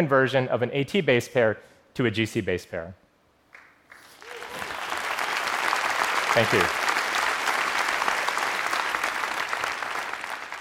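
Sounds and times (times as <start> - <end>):
speech: 0.0 - 3.0, 6.3 - 6.8
audience applause: 3.9 - 10.5.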